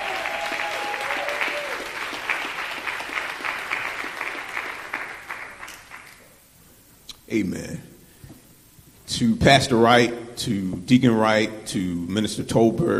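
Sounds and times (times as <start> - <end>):
audience clapping hands in praise: 0.0 - 6.2
speech: 7.3 - 7.9, 9.1 - 12.9.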